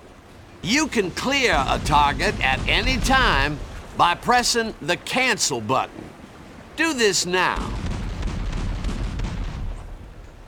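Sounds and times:
warship firing weapons in video game Battlestations Midway: 0.6s - 4.8s, 7.5s - 10.4s
speech: 0.6s - 6.1s, 6.8s - 7.8s.

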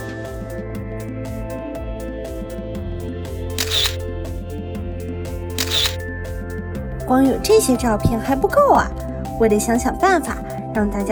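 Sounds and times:
soft music: 0.0s - 11.1s
cartoon camera shutter clicks: 3.6s - 4.0s, 5.6s - 6.0s
speech: 7.1s - 11.1s.

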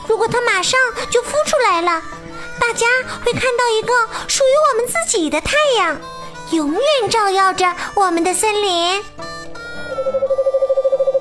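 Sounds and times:
speech: 0.2s - 9.2s
owl hooting: 9.9s - 11.1s.

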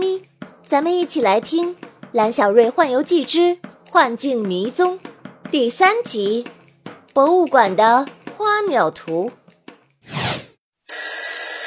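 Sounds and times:
speech: 0.7s - 6.6s, 7.2s - 9.4s
alarm clock ringing: 10.9s - 11.6s.

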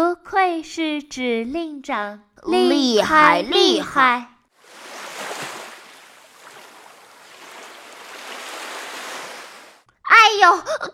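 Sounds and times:
speech: 0.4s - 4.3s, 10.4s - 10.9s
huge ocean waves: 4.6s - 9.8s.

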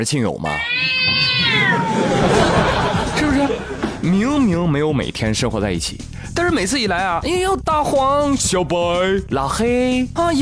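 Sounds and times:
speech: 0.0s - 10.4s
cat meowing: 0.4s - 2.2s
laughter: 1.4s - 4.5s.

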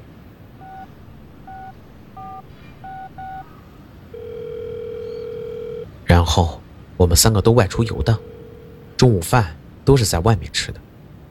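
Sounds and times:
hiss: 0.0s - 11.2s
telephone keypad dialing beeps: 0.6s - 3.5s, 4.2s - 5.9s, 8.0s - 9.0s
telephone ringback-style tone: 0.6s - 3.5s, 4.1s - 5.9s, 7.8s - 9.0s
speech: 6.1s - 8.3s, 9.0s - 10.9s.

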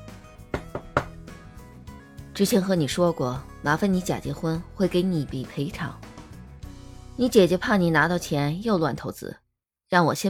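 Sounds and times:
long fingers tapping on a tabletop: 0.5s - 1.2s
speech: 2.4s - 6.0s, 7.2s - 10.2s.

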